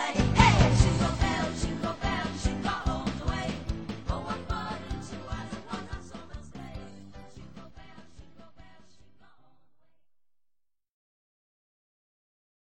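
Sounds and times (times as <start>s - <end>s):
Christmas song: 0.0s - 10.0s.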